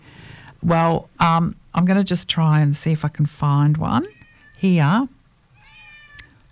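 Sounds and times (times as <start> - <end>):
speech: 0.7 - 5.1
cat meowing: 5.5 - 6.4.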